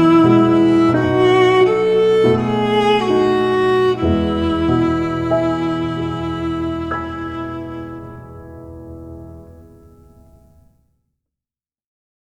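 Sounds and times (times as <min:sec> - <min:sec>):
violin: 0:00.0 - 0:09.8
piano: 0:00.0 - 0:10.8.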